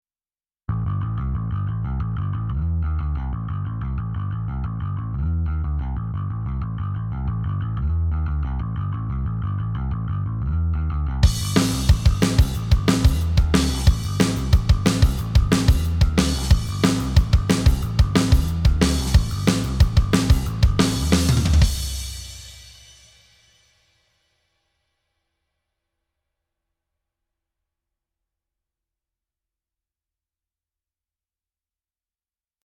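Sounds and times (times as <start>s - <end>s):
bass: 0.6s - 23.6s.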